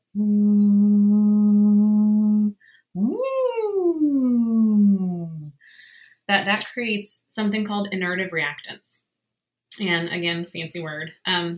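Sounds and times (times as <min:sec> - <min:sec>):
voice humming through a drinking straw: 0:00.0 - 0:05.5
speech: 0:00.2 - 0:00.4, 0:06.4 - 0:09.1, 0:09.8 - 0:11.5.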